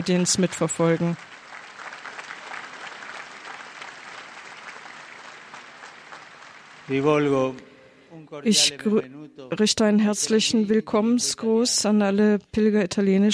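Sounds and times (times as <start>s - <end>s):
speech: 0.0s - 1.4s, 6.9s - 13.3s
audience applause: 0.0s - 7.3s.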